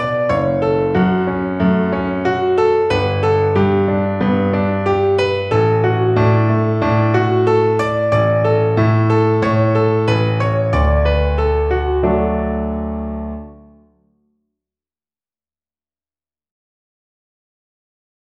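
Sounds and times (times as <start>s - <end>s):
piano accompaniment: 0.0s - 14.1s.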